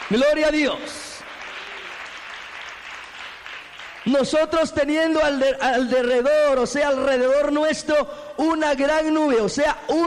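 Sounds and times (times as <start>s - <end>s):
congregation applause during a Spanish-language church service: 0.0s - 5.2s
speech: 0.1s - 1.0s, 4.1s - 10.0s.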